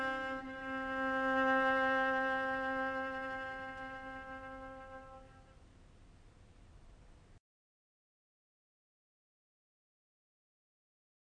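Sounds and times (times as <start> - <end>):
cello: 0.0 - 5.6.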